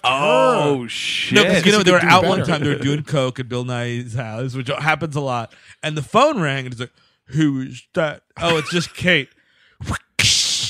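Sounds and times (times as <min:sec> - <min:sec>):
speech: 0:00.1 - 0:10.0
laughter: 0:01.3 - 0:03.3, 0:08.4 - 0:09.1
voice imitating a whip crack: 0:09.8 - 0:10.6.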